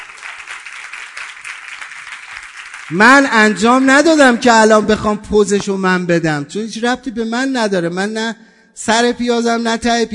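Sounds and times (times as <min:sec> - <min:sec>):
audience applause: 0:00.0 - 0:03.3
speech: 0:02.9 - 0:10.1.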